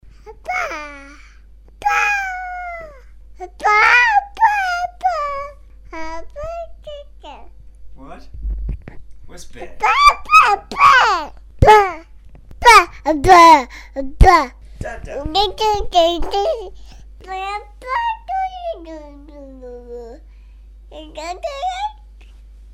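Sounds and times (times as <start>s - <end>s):
baby voice: 0.3s - 1.2s, 1.8s - 7.5s, 9.8s - 14.5s, 15.4s - 20.2s, 20.9s - 22.0s.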